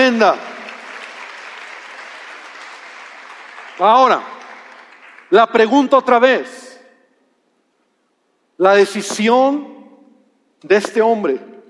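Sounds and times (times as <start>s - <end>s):
audience applause: 0.0s - 5.4s
speech: 0.1s - 0.5s, 3.8s - 4.4s, 5.3s - 6.7s, 8.6s - 9.7s, 10.6s - 11.5s.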